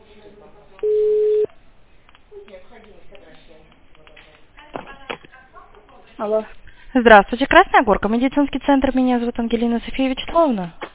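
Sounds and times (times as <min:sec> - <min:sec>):
telephone ringback tone while calling a medical centre: 0:00.8 - 0:01.5
speech: 0:06.2 - 0:10.8.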